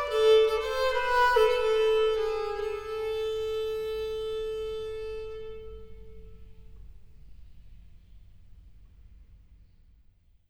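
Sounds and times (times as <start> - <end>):
renaissance violin playing: 0.0 - 6.8.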